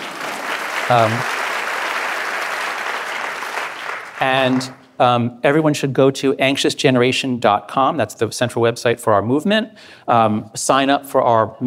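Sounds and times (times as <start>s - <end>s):
audience applause: 0.0s - 4.8s
speech: 0.9s - 1.3s, 4.2s - 11.6s.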